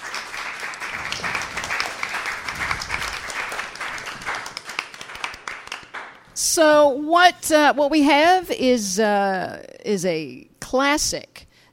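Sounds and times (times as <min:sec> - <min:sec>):
audience applause: 0:00.0 - 0:06.2
speech: 0:06.6 - 0:11.5.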